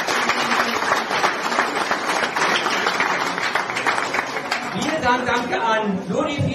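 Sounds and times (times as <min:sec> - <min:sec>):
audience applause: 0:00.0 - 0:05.1
speech: 0:05.1 - 0:06.5.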